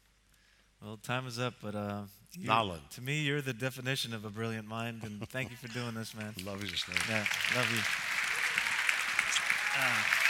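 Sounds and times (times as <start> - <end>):
speech: 0.9 - 8.1, 9.8 - 10.2
laughter: 5.0 - 6.3
clapping hands: 6.1 - 10.2.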